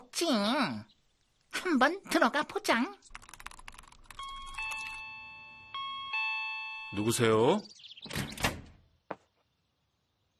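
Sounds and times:
speech: 0.1s - 0.9s, 1.5s - 3.2s, 6.9s - 8.4s
doorbell ringing: 4.2s - 7.5s.

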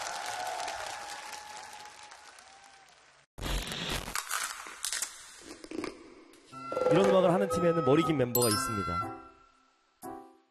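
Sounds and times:
applause: 0.0s - 3.3s
speech: 6.9s - 9.3s.

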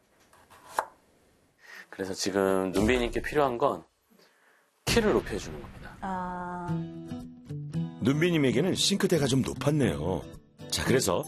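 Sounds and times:
knife chop on a cutting board at a kitchen sink counter: 0.4s - 0.9s
speech: 1.9s - 3.9s, 5.0s - 7.0s, 8.0s - 11.2s.

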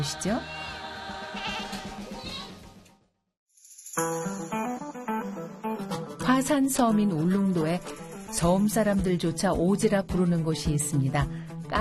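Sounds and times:
speech: 0.0s - 0.6s, 4.0s - 5.1s, 6.3s - 11.7s
goats bleating: 0.4s - 2.6s.

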